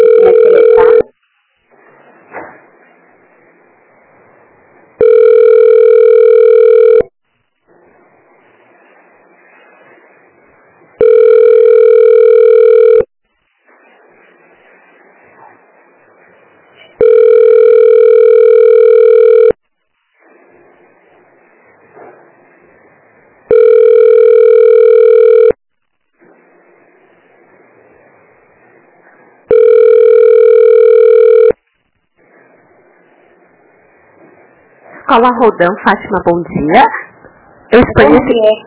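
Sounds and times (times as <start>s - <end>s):
ringback tone of an outgoing telephone call: 0.0s - 1.1s, 5.0s - 7.1s, 11.0s - 13.1s, 17.0s - 19.6s, 23.5s - 25.6s, 29.5s - 31.6s
speech: 35.1s - 37.0s, 37.7s - 38.6s.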